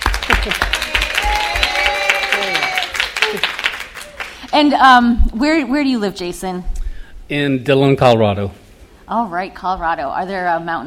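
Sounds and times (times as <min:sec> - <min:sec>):
people cheering and whooping: 0:00.0 - 0:04.4
audience applause: 0:00.0 - 0:04.5
speech: 0:00.4 - 0:00.8, 0:04.6 - 0:06.7, 0:07.3 - 0:10.8.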